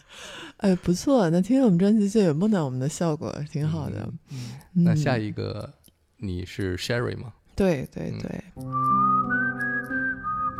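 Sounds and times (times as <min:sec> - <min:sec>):
speech: 0:00.6 - 0:09.4
whistled melody: 0:08.6 - 0:10.5.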